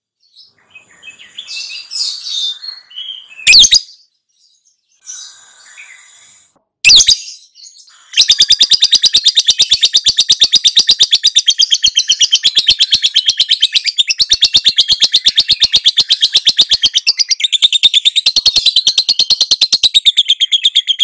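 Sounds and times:
lovebird high chattering twitters: 0.7 - 3.9, 7.9 - 21.0.

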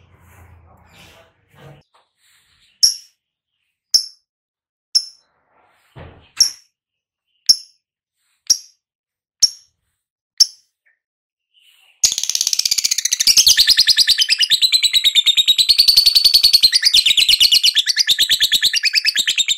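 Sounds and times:
lovebird sharp high chirps, ngekek call type: 2.8 - 3.1, 3.9 - 4.2, 5.0 - 5.2, 7.3 - 7.8, 11.6 - 19.5.

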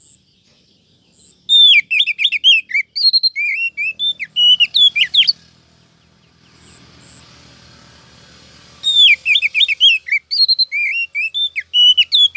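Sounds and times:
Oriental magpie-robin whistling song: 0.0 - 5.5, 8.8 - 12.3.

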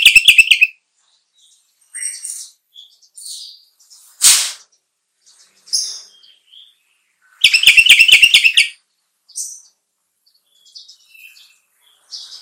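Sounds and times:
sooty-headed bulbul chattering song: 0.0 - 0.7, 7.4 - 8.8.

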